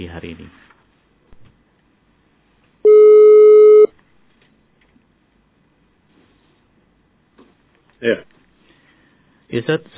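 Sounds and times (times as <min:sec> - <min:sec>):
speech: 0:00.1 - 0:00.7, 0:08.0 - 0:08.3, 0:09.5 - 0:09.9
telephone call tone beep while placing a call: 0:02.8 - 0:03.9.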